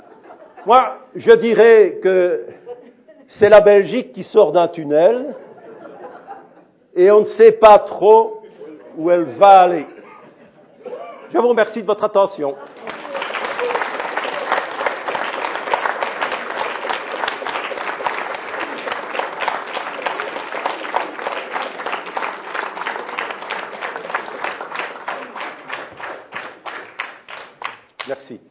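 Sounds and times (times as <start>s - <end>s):
laughter: 0.0s - 1.1s, 2.5s - 3.4s, 5.1s - 6.8s, 8.4s - 11.3s
speech: 0.6s - 5.4s, 7.0s - 8.4s, 9.0s - 9.9s, 10.8s - 12.7s
sustained audience applause: 12.6s - 27.9s.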